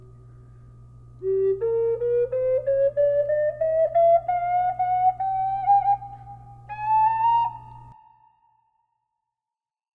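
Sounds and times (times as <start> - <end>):
flute with reverb in G minor: 1.2 - 9.0.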